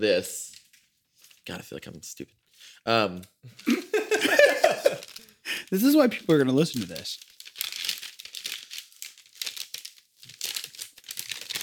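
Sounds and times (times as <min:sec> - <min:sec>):
speech: 0:00.0 - 0:00.5, 0:01.5 - 0:07.3
laughter: 0:03.6 - 0:05.6
crinkling plastic MRE bag being handled: 0:04.2 - 0:11.6.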